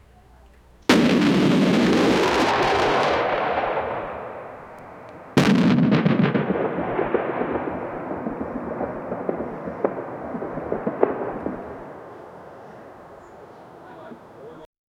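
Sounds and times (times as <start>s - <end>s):
bombing: 0.9s - 12.1s
several fighter planes: 2.2s - 14.7s.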